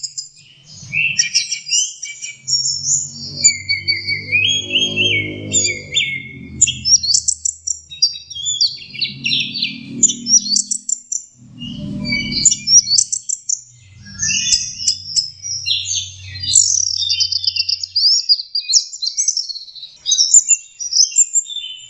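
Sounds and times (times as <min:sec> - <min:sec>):
orange-headed thrush song: 0:00.0 - 0:21.8
low rumbling hum: 0:02.2 - 0:17.5.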